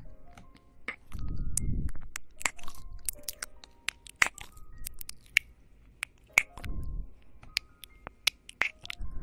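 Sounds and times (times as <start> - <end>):
ASMR mouth sounds: 0.9 - 6.9, 7.6 - 9.1
ASMR ear licking: 2.1 - 6.7, 7.8 - 9.0.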